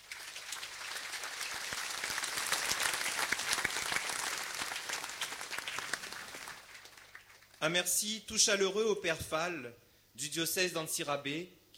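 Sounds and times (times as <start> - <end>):
audience applauding: 0.0 - 7.6
speech: 7.6 - 11.7.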